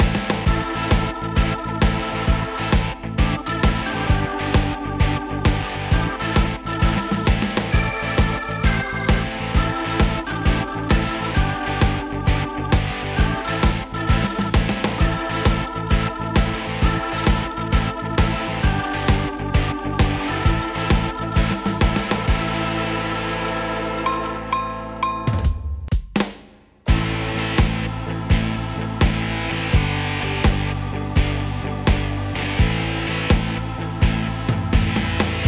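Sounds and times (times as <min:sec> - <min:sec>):
rock organ: 0:00.0 - 0:25.9, 0:26.9 - 0:35.4.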